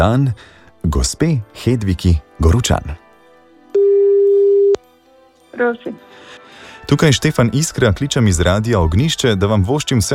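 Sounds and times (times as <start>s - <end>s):
speech: 0.0s - 3.0s, 5.6s - 6.1s, 6.9s - 10.1s
telephone ringing tone: 3.7s - 4.8s.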